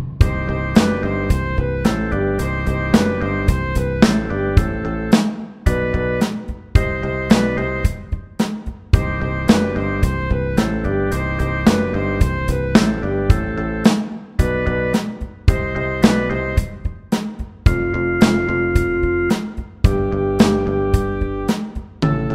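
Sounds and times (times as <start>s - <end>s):
pop rock saxophone: 0.2s - 8.4s, 9.0s - 22.2s.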